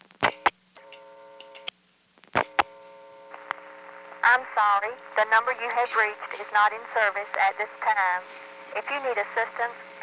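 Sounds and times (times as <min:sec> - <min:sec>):
faint low hum: 0:00.0 - 0:10.0
telephone reorder tone on a step-by-step first selector: 0:00.2 - 0:05.2
speech: 0:04.3 - 0:10.0.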